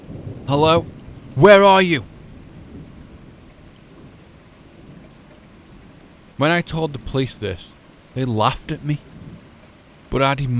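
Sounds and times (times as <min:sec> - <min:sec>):
rumbling thunder: 0:00.0 - 0:01.4, 0:02.0 - 0:05.2
heavy rain: 0:00.0 - 0:10.5
speech: 0:00.5 - 0:02.1, 0:06.4 - 0:09.1, 0:10.1 - 0:10.5.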